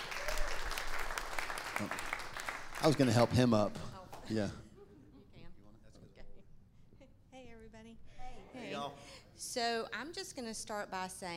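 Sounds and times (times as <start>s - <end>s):
faint cheers or voices: 0.0s - 0.8s
audience applause: 0.0s - 3.6s
speech: 1.8s - 2.1s, 2.8s - 4.6s, 8.8s - 11.3s.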